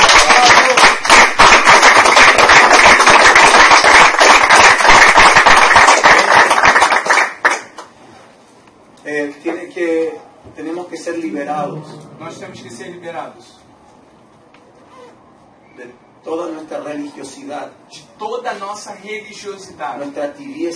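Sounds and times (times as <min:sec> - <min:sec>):
audience applause: 0:00.0 - 0:07.7
speech: 0:11.3 - 0:13.7, 0:15.8 - 0:20.7.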